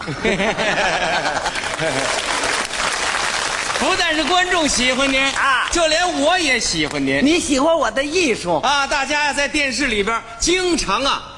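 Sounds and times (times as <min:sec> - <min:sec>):
laughter: 0:00.0 - 0:02.5
speech: 0:00.1 - 0:02.3, 0:03.8 - 0:11.3
audience applause: 0:00.9 - 0:07.0.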